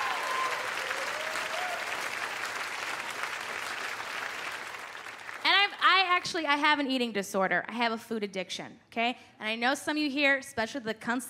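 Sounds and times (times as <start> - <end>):
audience applause: 0.0 - 5.5
speech: 6.2 - 11.2.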